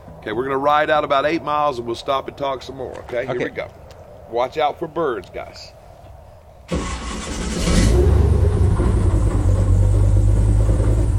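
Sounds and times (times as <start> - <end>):
speech: 0.2 - 5.8
airboat engine running: 6.8 - 11.1.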